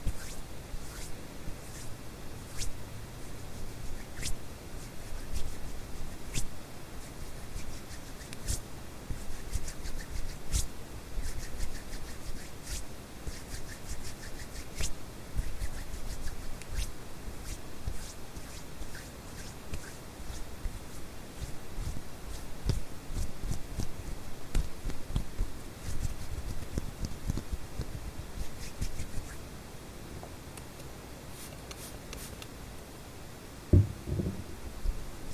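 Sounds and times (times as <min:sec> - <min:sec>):
hand rubs pats and clicks: 0:00.0 - 0:01.9, 0:07.6 - 0:29.4, 0:31.4 - 0:32.5, 0:33.7 - 0:34.5
steady hiss of white noise: 0:00.0 - 0:35.3
louder knock: 0:33.7 - 0:34.5.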